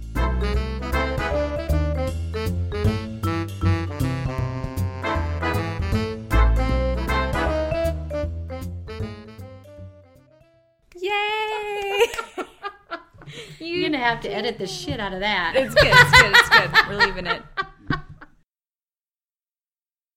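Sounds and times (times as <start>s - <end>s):
instrumental podcast theme music with bouncy beat: 0.0s - 10.4s
laughter: 11.6s - 14.8s, 15.5s - 18.3s
speech: 14.0s - 17.5s.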